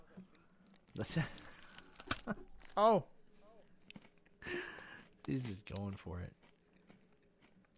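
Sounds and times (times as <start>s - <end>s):
bites into a beef-flavoured rice cake crunching: 0.6s - 7.7s
speech: 1.0s - 1.4s, 2.3s - 3.1s, 5.3s - 6.4s.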